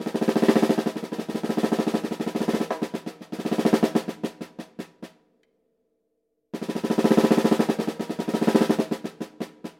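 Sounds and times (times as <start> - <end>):
fast alternating single strokes on a drum with two drumsticks: 0.0 - 5.1, 6.6 - 9.7.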